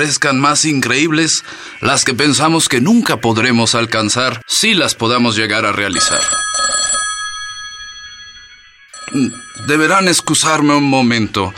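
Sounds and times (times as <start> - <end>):
speech: 0.0 - 6.8, 9.1 - 11.5
telephone with metallic bell ringing: 5.9 - 11.0.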